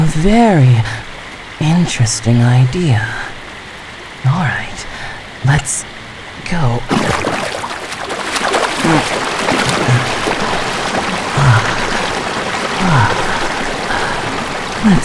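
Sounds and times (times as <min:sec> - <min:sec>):
speech: 0:00.2 - 0:01.0, 0:01.6 - 0:03.3, 0:05.5 - 0:05.9, 0:06.5 - 0:06.9
raindrops pattering onto a river's surface: 0:06.9 - 0:15.0.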